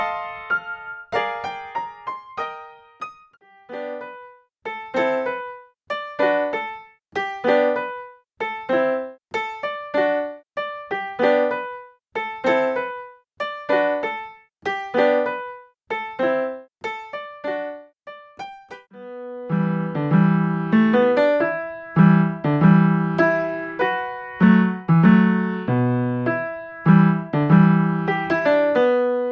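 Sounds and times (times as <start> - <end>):
piano pieces: 0.0 - 29.3.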